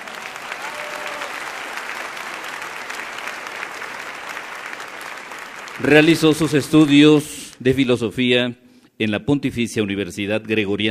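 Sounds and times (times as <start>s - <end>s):
audience applause: 0.0s - 7.0s
speech: 5.8s - 10.8s.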